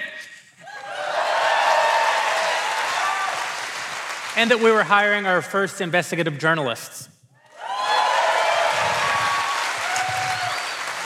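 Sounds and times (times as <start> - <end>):
audience applause: 0.8 - 4.8, 7.6 - 11.0
speech: 4.4 - 7.1.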